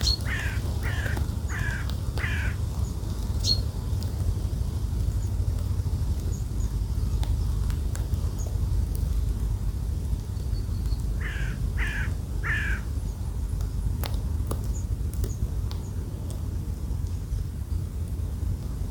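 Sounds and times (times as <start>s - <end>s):
bird calling harshly: 0.0s - 2.6s, 11.2s - 12.9s
loud wind rumble: 0.0s - 18.8s.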